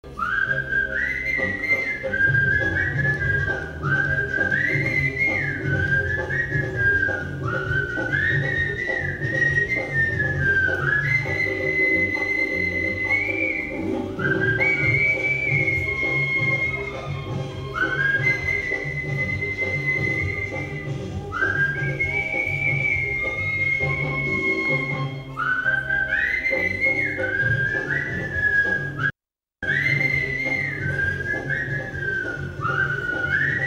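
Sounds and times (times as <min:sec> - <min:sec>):
whistle: 0:00.1 - 0:33.6.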